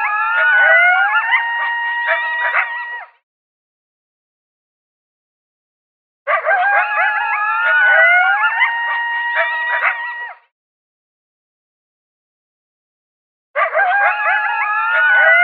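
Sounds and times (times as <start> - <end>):
coyotes howling and yipping: 0.0 - 3.2, 6.3 - 10.4, 13.6 - 15.4.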